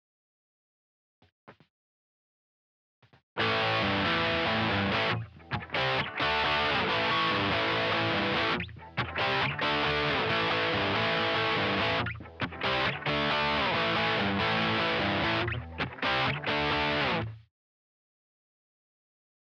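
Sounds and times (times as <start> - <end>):
Les Paul electric guitar through rock amp stack: 3.4 - 17.4.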